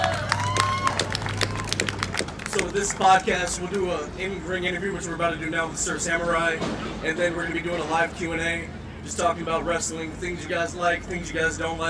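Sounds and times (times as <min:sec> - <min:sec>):
audience applause: 0:00.0 - 0:03.4
speech: 0:02.6 - 0:11.8.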